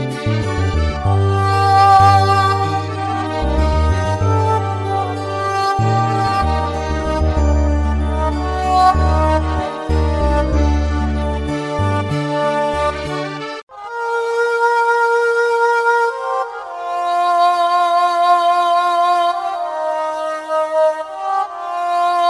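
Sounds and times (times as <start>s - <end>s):
kabak kemane fiddle: 0.0s - 22.2s
ney flute: 0.0s - 22.2s.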